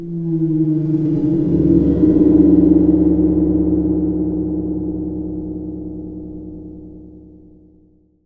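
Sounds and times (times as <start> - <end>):
gongs: 0.0 - 7.6.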